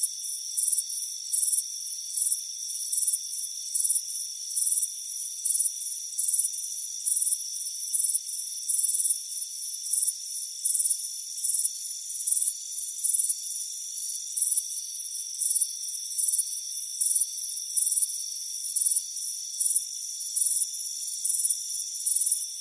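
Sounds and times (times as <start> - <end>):
crickets chirping: 0.1 - 22.6.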